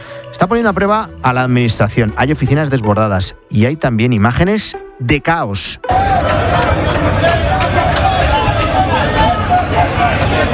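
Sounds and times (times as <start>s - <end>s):
speech: 0.4s - 7.5s
crowd of migrants outside the Gambian embassy in Madrid, voices and shouts: 5.8s - 10.5s.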